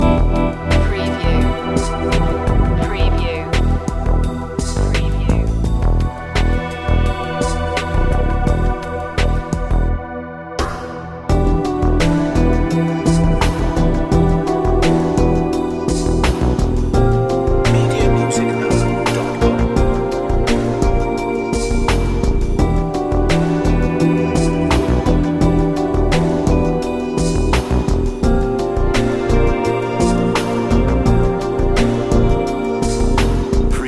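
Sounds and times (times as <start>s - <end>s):
sensual and enigmatic music loop: 0.0s - 33.8s.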